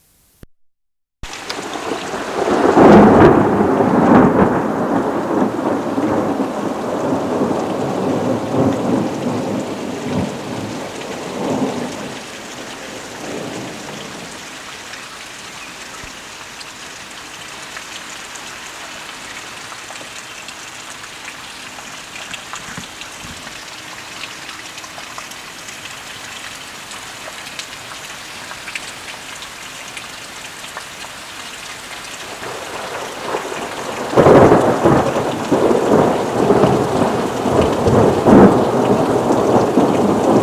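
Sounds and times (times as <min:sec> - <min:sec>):
thunder: 0:01.6 - 0:12.1, 0:32.4 - 0:40.4.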